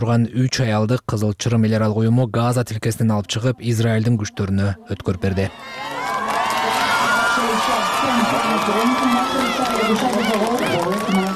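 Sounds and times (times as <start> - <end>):
speech: 0.0 - 5.9, 8.1 - 11.2
crowd cheering in Tel Aviv watching the release of hostages: 5.1 - 11.3.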